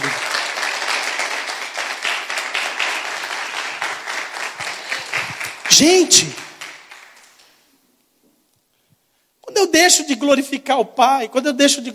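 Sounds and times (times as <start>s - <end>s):
audience applause: 0.0s - 7.5s
speech: 5.8s - 6.4s, 9.9s - 11.9s.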